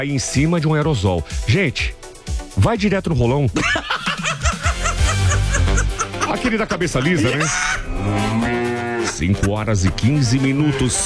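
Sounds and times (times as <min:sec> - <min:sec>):
speech: 0:00.0 - 0:02.0, 0:02.6 - 0:04.1, 0:06.4 - 0:08.6, 0:09.2 - 0:11.0
laughter: 0:03.6 - 0:08.0
cow mooing: 0:07.3 - 0:09.2.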